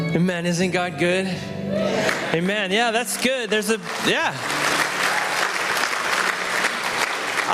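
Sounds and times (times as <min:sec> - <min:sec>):
speech: 0:00.2 - 0:04.7
audience clapping hands: 0:02.0 - 0:07.5.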